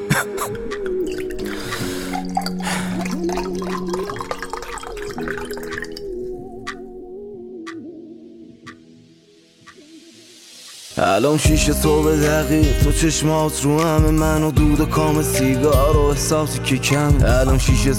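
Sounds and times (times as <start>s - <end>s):
gulps: 0.0s - 6.1s
speech: 0.2s - 0.9s, 11.2s - 17.9s
water pouring: 1.0s - 6.7s.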